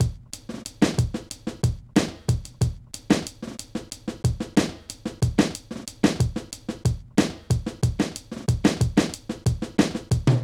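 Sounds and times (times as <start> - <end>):
minimal drum loops: 0.0 - 10.4.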